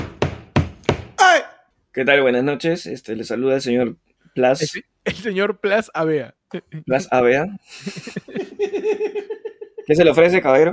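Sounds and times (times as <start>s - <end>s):
knocking on a door: 0.0s - 1.2s
speech: 2.0s - 10.7s
laughter: 7.7s - 9.9s.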